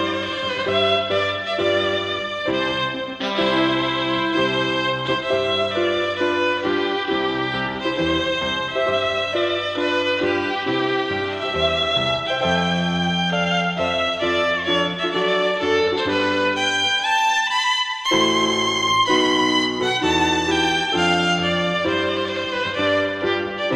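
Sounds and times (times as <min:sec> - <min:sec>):
violin playing wedding music: 0:00.0 - 0:23.7.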